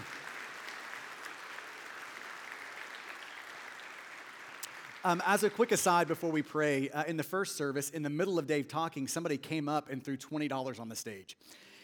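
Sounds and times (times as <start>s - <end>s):
audience applause: 0.0s - 6.4s
speech: 5.0s - 11.7s.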